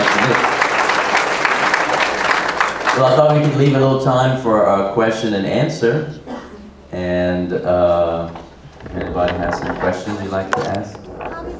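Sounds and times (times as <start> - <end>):
audience applause for a presenter at a talk: 0.0 - 3.5
speech: 3.0 - 6.3, 6.9 - 11.5.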